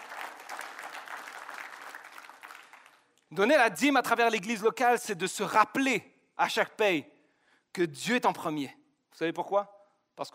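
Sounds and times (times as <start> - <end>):
audience applause: 0.0 - 3.0
speech: 3.3 - 7.1, 7.7 - 10.3.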